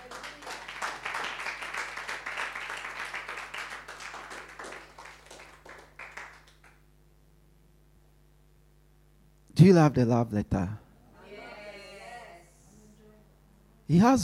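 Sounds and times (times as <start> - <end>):
audience clapping: 0.0 - 6.8
speech: 9.6 - 10.8, 13.9 - 14.2.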